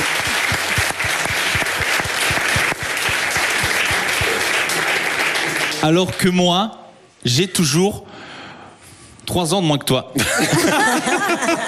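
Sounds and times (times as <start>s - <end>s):
audience applause: 0.0s - 6.2s
speech: 5.8s - 8.2s, 9.3s - 11.6s
laughter: 10.2s - 11.6s.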